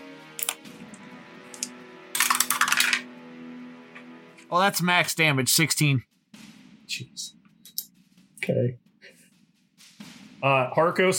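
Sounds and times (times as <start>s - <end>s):
dice rolling across a hard table: 1.5s - 3.1s
speech: 4.5s - 6.1s, 6.9s - 7.4s, 8.5s - 8.8s, 10.4s - 11.1s.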